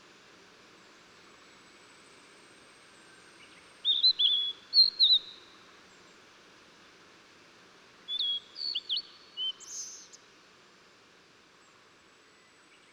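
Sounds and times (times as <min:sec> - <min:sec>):
Blue-and-white flycatcher song of clear slurred whistles and sharp high notes: 0:03.4 - 0:05.5, 0:08.1 - 0:10.2.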